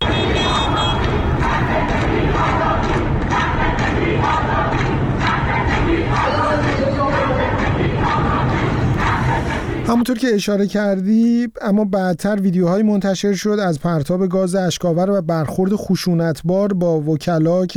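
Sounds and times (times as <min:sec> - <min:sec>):
lawyers chanting protest slogans at a bar association rally in Tehran: 0:00.0 - 0:10.0
speech: 0:10.0 - 0:17.7.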